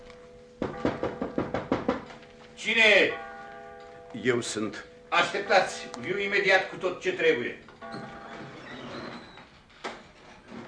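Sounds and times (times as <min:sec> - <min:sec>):
knocking on a door: 0:00.6 - 0:02.1
speech: 0:02.6 - 0:03.2, 0:04.1 - 0:08.0.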